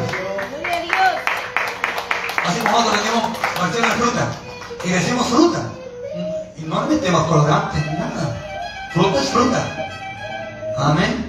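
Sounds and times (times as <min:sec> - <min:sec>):
audience clapping hands: 0:00.0 - 0:05.4
speech: 0:02.7 - 0:05.8, 0:06.7 - 0:09.9, 0:10.8 - 0:11.2.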